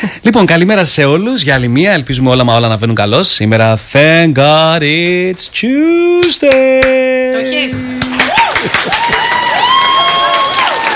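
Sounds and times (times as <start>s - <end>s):
speech: 0.0s - 9.5s
children applauding: 8.1s - 10.9s.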